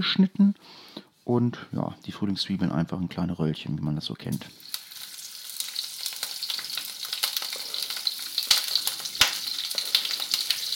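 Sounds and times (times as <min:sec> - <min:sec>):
speech: 0:00.0 - 0:04.7
vegetables frying in hot fat in a pan: 0:04.4 - 0:10.7.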